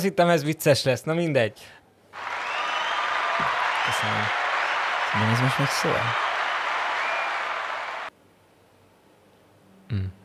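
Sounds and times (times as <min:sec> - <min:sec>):
speech: 0:00.0 - 0:02.4, 0:03.4 - 0:04.4, 0:05.1 - 0:06.2, 0:09.9 - 0:10.2
applause: 0:02.2 - 0:08.1.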